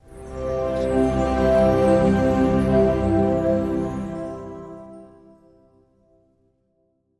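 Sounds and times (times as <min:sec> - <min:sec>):
inspiring ident music: 0:00.0 - 0:05.5.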